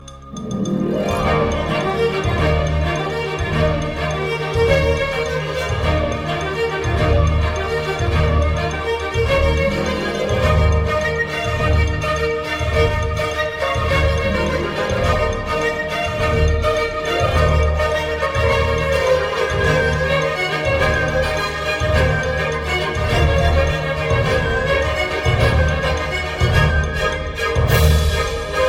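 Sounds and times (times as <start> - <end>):
ringtone background music: 0.0 - 28.6.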